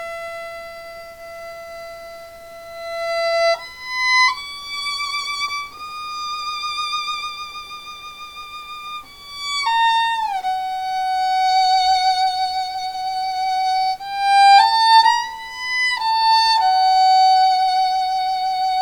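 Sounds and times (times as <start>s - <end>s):
violin solo: 0.0s - 18.8s.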